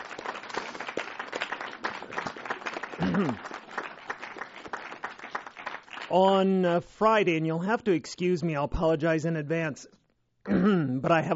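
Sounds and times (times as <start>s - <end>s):
crowd cheer: 0.0s - 6.1s
audience applause: 0.0s - 6.2s
speech: 3.1s - 3.6s, 6.1s - 11.3s.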